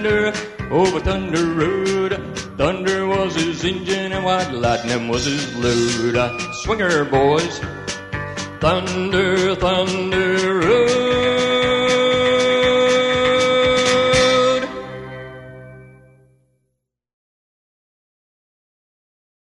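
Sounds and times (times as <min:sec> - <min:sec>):
vocals: 0:00.0 - 0:15.4.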